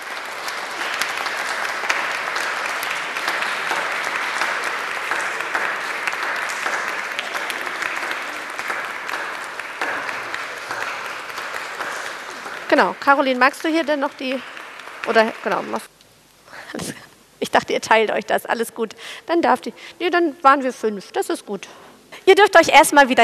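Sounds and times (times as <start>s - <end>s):
audience applauding: 0.0s - 15.9s
speech: 12.8s - 14.5s, 15.1s - 15.9s, 17.5s - 23.2s.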